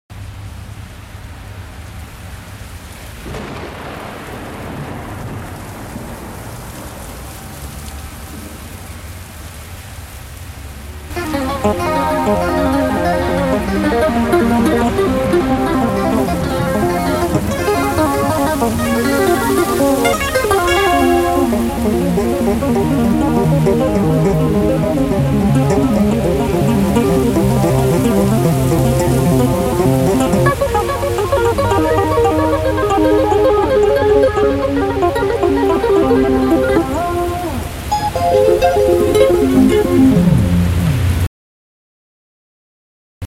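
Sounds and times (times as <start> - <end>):
rain-themed instrumental music: 11.1 - 40.9.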